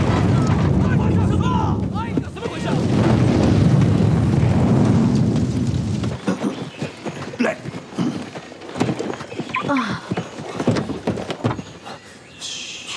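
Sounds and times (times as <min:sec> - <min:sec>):
loud explosion with deep rumbling roar: 0:00.0 - 0:06.3
scattered crackles and thuds: 0:00.0 - 0:11.9.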